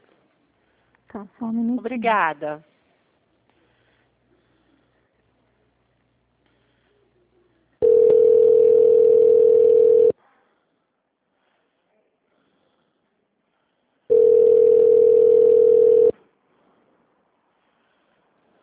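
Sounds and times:
speech: 1.1s - 2.7s
telephone line tones during call transfer at an HR office: 7.8s - 10.1s, 14.1s - 16.1s.

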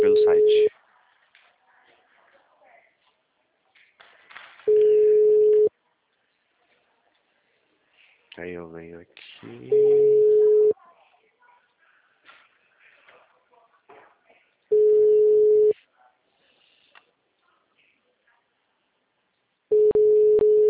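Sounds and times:
ringback tone of an unanswered phone call: 0.0s - 0.7s, 4.7s - 5.7s, 9.7s - 10.7s, 14.7s - 15.7s, 19.7s - 20.6s.

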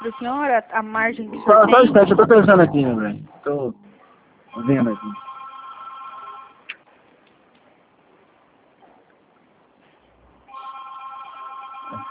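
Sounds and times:
speech: 0.0s - 3.8s, 4.5s - 5.3s
telephone ringing: 4.5s - 6.6s, 10.5s - 12.0s.

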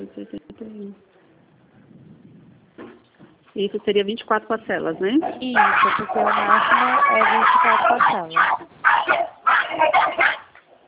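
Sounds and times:
speech: 0.0s - 1.2s, 3.6s - 9.2s
small pet dog barking: 5.5s - 10.5s.

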